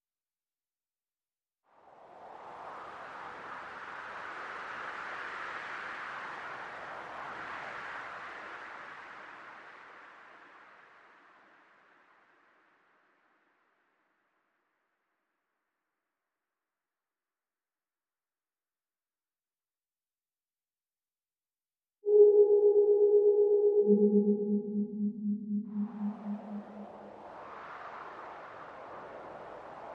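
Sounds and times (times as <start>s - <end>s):
noises: 22.1s - 27.4s.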